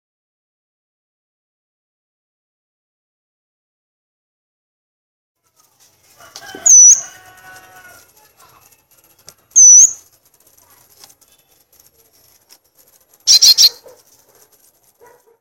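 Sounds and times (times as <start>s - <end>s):
soft rustling: 5.4s - 15.3s
violaceous euphonia song: 6.6s - 7.1s, 9.6s - 10.0s, 13.3s - 13.8s.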